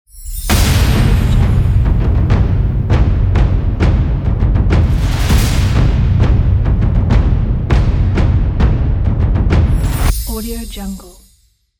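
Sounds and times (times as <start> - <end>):
epic adventure ident music: 0.4 - 10.4.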